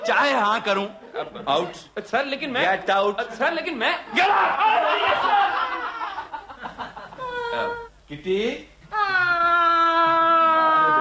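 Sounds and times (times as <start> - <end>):
speech: 0.0 - 5.6, 7.5 - 8.7
laughter: 4.7 - 7.8
girl crying: 7.2 - 8.0, 8.9 - 10.9.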